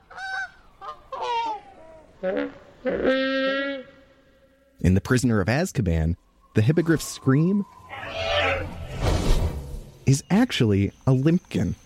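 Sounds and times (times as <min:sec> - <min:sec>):
Brachiosaurus call made from slowed goose honks: 0:00.0 - 0:04.7
speech: 0:02.2 - 0:03.6, 0:04.8 - 0:08.8, 0:10.1 - 0:11.8.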